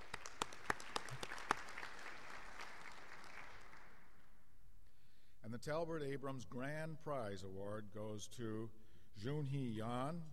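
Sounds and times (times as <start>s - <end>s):
crowd applause: 0.0s - 4.0s
speech: 5.5s - 10.3s.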